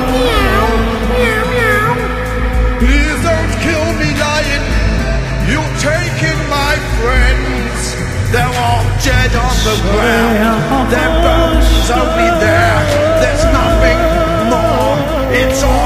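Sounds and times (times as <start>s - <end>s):
cat meowing: 0.0s - 2.5s
steady low rumble: 0.0s - 15.8s
speech: 2.8s - 3.1s.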